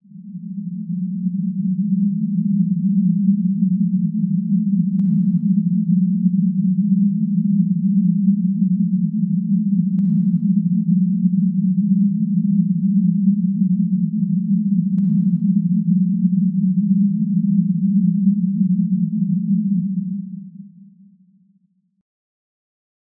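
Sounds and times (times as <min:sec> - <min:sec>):
deep rumble: 0:00.2 - 0:20.4.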